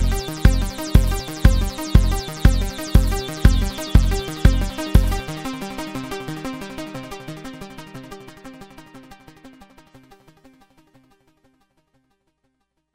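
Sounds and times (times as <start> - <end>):
MonoPoly synthesizer arpeggio synced to ProTools: 0.0 - 8.7.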